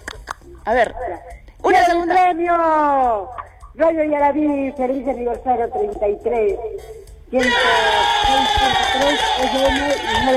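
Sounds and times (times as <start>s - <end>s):
speech: 0.6s - 10.3s
crowd shouting: 7.4s - 10.3s.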